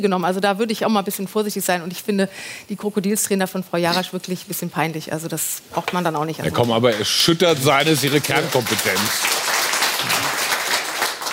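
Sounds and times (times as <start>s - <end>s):
speech: 0.0s - 10.2s
audience applause: 6.6s - 11.3s.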